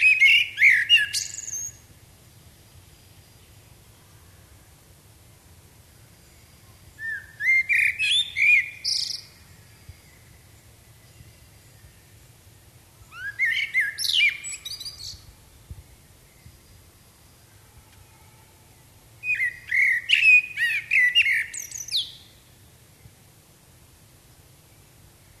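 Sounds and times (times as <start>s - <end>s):
common blackbird Turdus merula singing: 0.0s - 1.9s, 6.3s - 12.2s, 13.0s - 15.3s, 19.2s - 22.5s.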